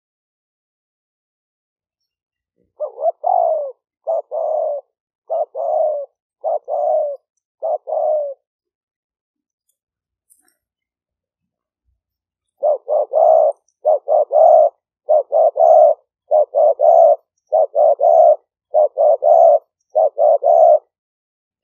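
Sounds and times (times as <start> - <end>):
spotted dove cooing: 2.7 - 8.5, 12.6 - 21.0.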